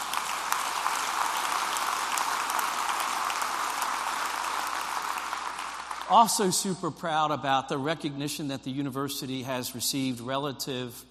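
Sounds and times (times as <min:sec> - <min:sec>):
audience applause: 0:00.0 - 0:06.4
speech: 0:06.1 - 0:11.0.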